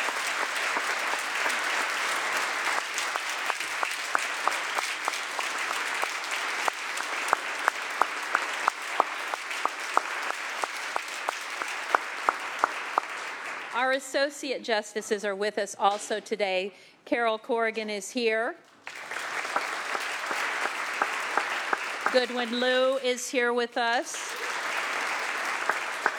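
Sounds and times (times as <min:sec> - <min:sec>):
audience applause: 0:00.0 - 0:13.8, 0:18.8 - 0:23.0, 0:23.8 - 0:26.1
speech: 0:13.9 - 0:19.0, 0:22.1 - 0:24.4.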